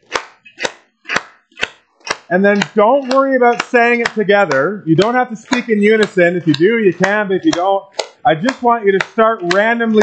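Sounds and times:
audience clapping hands: 0.0s - 10.0s
speech: 2.3s - 10.0s.

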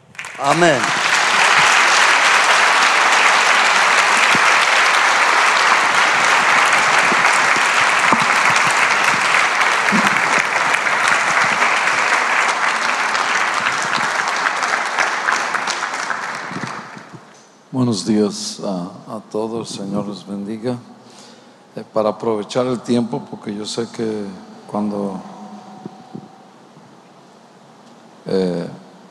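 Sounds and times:
warm applause: 0.0s - 17.4s, 22.1s - 26.6s
speech: 0.4s - 1.0s, 17.8s - 20.9s, 21.8s - 25.3s.

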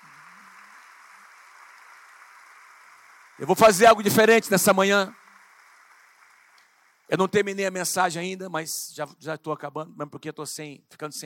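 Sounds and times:
audience applause: 0.0s - 7.7s
speech: 3.4s - 5.2s, 7.1s - 11.2s.

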